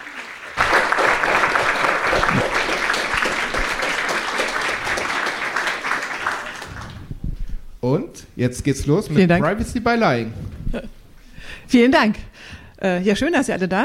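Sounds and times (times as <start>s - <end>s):
audience applause: 0.0s - 7.2s
speech: 7.9s - 11.0s, 11.7s - 13.8s.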